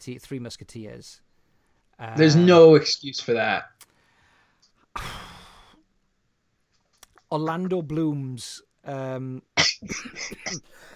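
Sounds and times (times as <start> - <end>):
speech: 0.0 - 1.3, 2.0 - 3.8, 5.0 - 5.3, 7.3 - 10.9
choking cough: 9.6 - 10.7.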